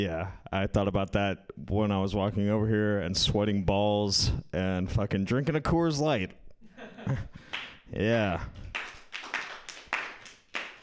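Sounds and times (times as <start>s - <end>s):
speech: 0.0s - 6.4s, 7.0s - 8.9s
hands clapping: 7.4s - 10.8s.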